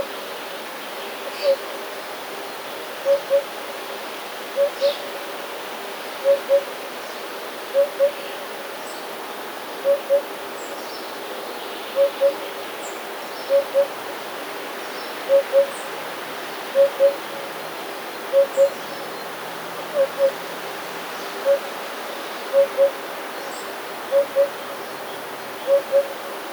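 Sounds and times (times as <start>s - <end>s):
Eurasian hoopoe hooting: 3.1s - 3.5s, 6.2s - 6.7s, 7.8s - 8.2s, 9.8s - 10.3s, 12.0s - 12.4s, 13.5s - 14.0s, 15.3s - 15.8s, 16.8s - 17.3s, 18.3s - 18.8s, 19.9s - 20.4s, 21.4s - 21.7s, 22.5s - 23.0s, 24.1s - 24.6s, 25.6s - 26.2s.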